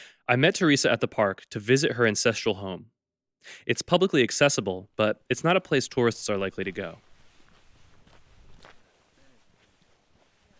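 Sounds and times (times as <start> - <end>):
speech: 0.3 - 7.1
footsteps on a path winding down from a grassy hilltop toward a cove: 6.7 - 10.5.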